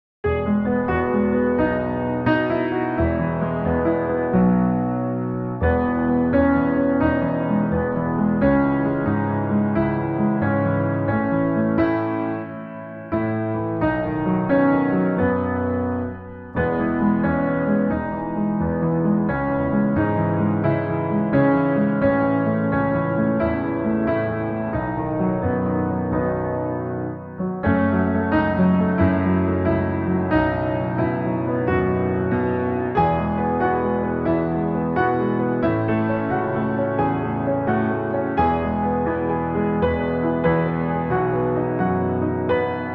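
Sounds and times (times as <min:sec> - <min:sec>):
instrumental music at 88 BPM in E without vocals: 0:00.2 - 0:42.9.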